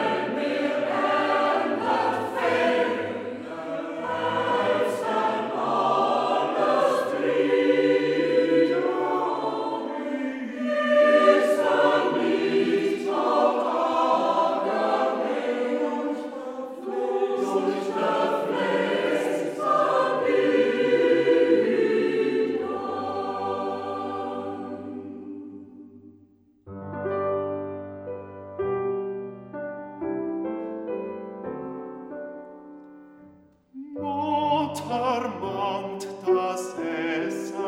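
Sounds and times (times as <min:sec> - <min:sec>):
Transylvanian Saxon choir singing in the Hermannstadt dialect: 0:00.0 - 0:26.2, 0:33.8 - 0:37.6
piano: 0:00.0 - 0:37.6
baritone singing: 0:33.8 - 0:37.6.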